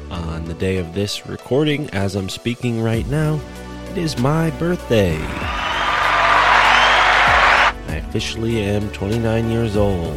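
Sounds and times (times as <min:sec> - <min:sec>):
speech: 0:00.1 - 0:05.6, 0:08.1 - 0:10.1
crowd applause: 0:05.2 - 0:07.7.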